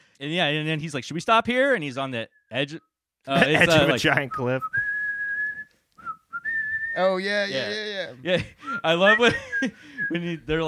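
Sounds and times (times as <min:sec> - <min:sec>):
speech: 0:00.2 - 0:04.9, 0:07.0 - 0:10.6
laughter: 0:03.3 - 0:04.4, 0:07.6 - 0:10.2
man whistling a cheerful marching tune: 0:04.3 - 0:07.0, 0:08.6 - 0:10.2.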